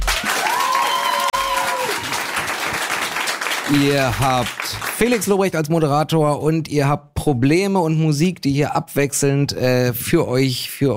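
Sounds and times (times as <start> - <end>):
live audience applauding: 0.0 - 5.5
speech: 3.7 - 10.9.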